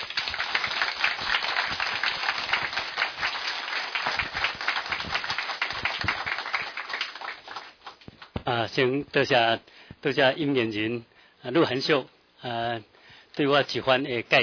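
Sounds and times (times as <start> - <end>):
enthusiastic crowd applause: 0.0 - 8.0
speech: 8.5 - 14.4.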